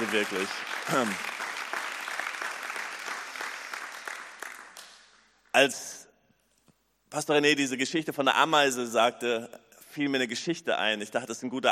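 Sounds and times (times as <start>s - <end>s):
audience applause: 0.0s - 5.0s
speech: 0.1s - 1.4s, 5.6s - 6.0s, 7.1s - 11.7s.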